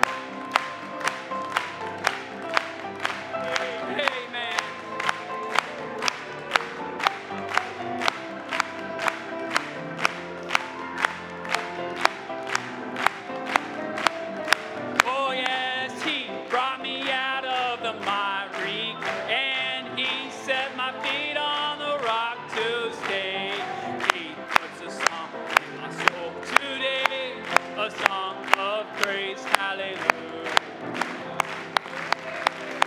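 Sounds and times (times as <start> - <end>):
audience clapping hands: 0.0 - 32.8.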